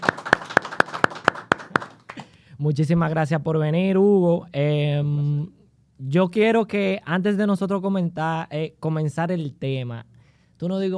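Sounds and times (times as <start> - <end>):
applause: 0.0 - 2.4
speech: 2.6 - 10.9.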